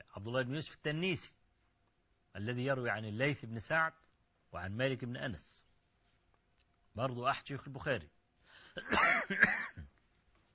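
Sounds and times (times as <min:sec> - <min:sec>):
speech: 0:00.2 - 0:01.4, 0:02.3 - 0:05.6, 0:07.0 - 0:08.2, 0:08.8 - 0:09.8
person coughing from dusty Cairo air: 0:08.8 - 0:10.0.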